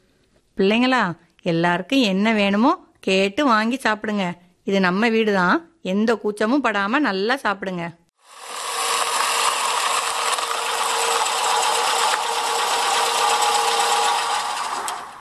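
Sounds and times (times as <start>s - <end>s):
speech: 0.6s - 8.0s
car engine droning: 8.8s - 15.2s.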